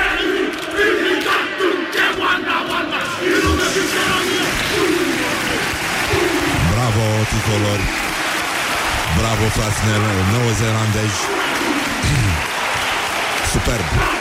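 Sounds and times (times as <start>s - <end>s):
massed male voices performing a haka war chant at the 2019 Rugby World Cup: 0.0s - 7.4s, 9.8s - 12.5s, 13.8s - 14.2s
crowd noise at the 2019 Rugby World Cup: 0.0s - 14.2s
speech: 9.5s - 12.5s, 13.5s - 14.2s.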